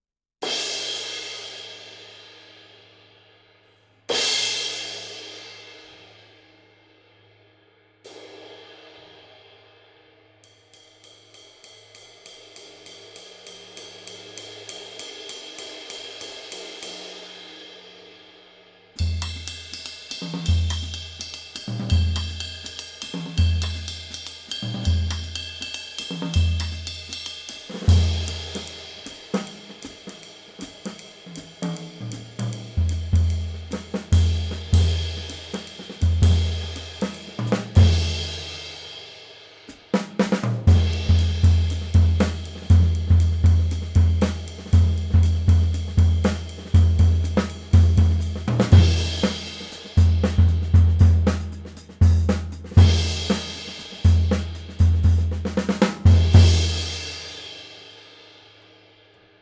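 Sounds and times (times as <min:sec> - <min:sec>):
22-inch Sabian Artisan cymbal: 0:00.4 - 0:59.3.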